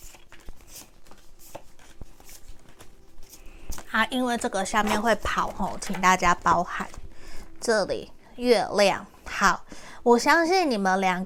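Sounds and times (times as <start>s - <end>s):
tarot cards being drawn from the deck: 0.0s - 6.1s
speech: 3.9s - 7.0s, 7.6s - 11.2s.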